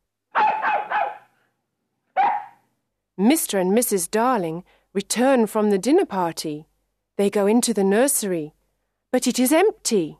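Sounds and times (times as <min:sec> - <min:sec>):
dog barking: 0:00.3 - 0:01.4, 0:02.2 - 0:02.6
speech: 0:03.2 - 0:10.1.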